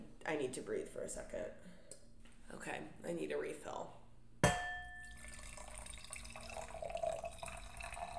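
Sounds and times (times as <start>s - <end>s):
speech: 0.2s - 1.8s, 2.5s - 4.0s
glass clinking: 4.4s - 8.1s.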